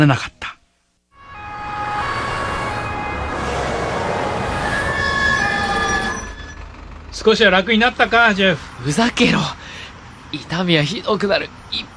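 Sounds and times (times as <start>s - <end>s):
speech: 0.0s - 0.4s, 7.2s - 9.6s, 10.3s - 11.9s
ambulance siren: 1.2s - 9.2s.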